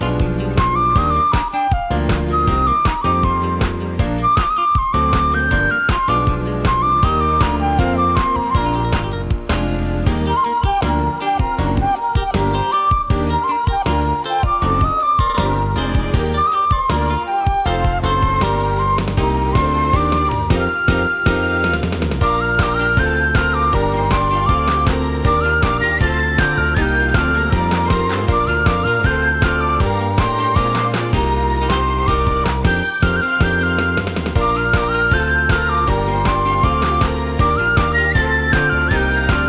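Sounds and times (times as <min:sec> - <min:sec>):
fue flute: 0:00.0 - 0:39.4.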